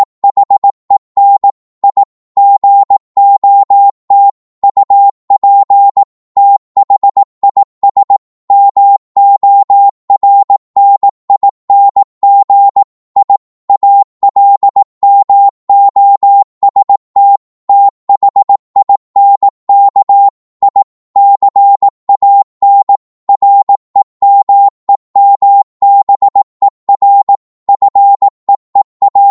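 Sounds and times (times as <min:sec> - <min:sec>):
morse code at 18 words per minute: 0:00.0 - 0:29.3.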